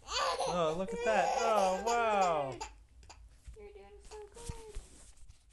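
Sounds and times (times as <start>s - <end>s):
person struggling to crawl: 0.2s - 2.7s.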